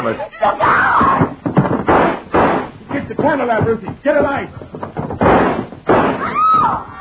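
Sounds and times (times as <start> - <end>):
people shouting: 0.4 - 1.4, 6.2 - 6.9
gunshots fired in the dark: 1.7 - 3.3, 5.2 - 6.4.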